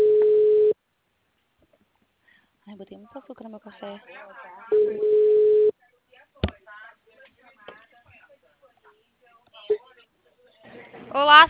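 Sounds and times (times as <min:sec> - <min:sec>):
telephone busy tone after a dropped call: 0:00.0 - 0:00.8, 0:04.7 - 0:05.7
speech: 0:02.8 - 0:05.5, 0:11.1 - 0:11.4.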